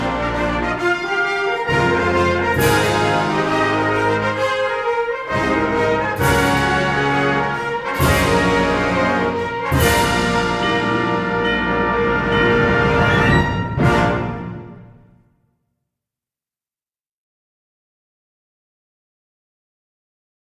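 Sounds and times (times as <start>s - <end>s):
epic fanfare: 0.0s - 15.2s.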